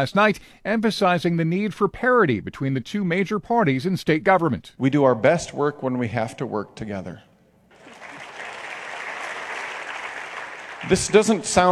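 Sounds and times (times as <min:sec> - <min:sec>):
speech: 0:00.0 - 0:07.3, 0:10.8 - 0:11.7
audience clapping: 0:07.7 - 0:11.7.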